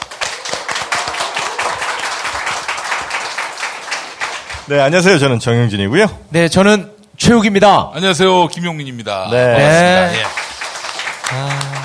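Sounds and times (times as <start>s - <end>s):
audience applause: 0.0s - 4.7s, 9.6s - 11.8s
speech: 4.7s - 10.4s.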